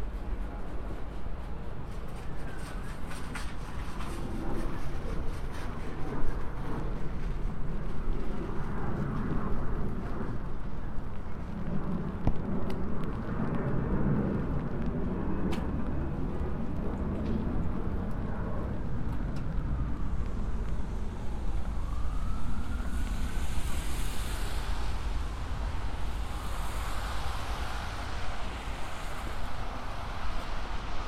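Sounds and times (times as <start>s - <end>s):
low rumble of a moving MTA transit vehicle: 0.0s - 31.0s
rising whine: 15.7s - 31.0s
soft hissing bursts: 22.9s - 31.0s.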